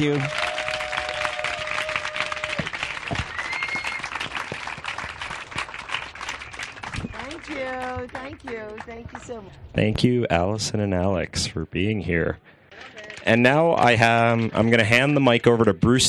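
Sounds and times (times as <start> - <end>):
speech: 0.0 - 0.4, 8.0 - 12.6, 13.2 - 16.0
audience applause: 0.0 - 9.4, 13.0 - 16.0
whistles: 3.1 - 4.2.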